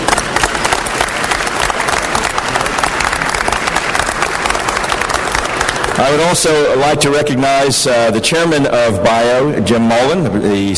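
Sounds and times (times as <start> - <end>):
audience applause: 0.0 - 6.8
speech: 6.0 - 10.7.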